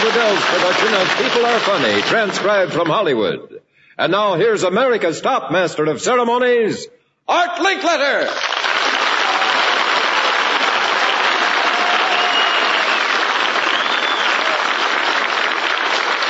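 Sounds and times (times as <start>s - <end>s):
studio audience in Hollywood applauding to welcome a show's host: 0.0s - 2.9s, 8.3s - 16.2s
speech: 0.0s - 8.6s.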